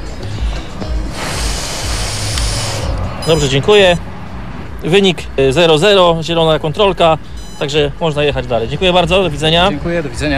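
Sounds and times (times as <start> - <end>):
low rumbling hum: 0.0 - 4.9
breath blown into a breathalyzer during a roadside police sobriety check: 0.3 - 3.0
speech: 3.2 - 4.1, 4.8 - 10.3.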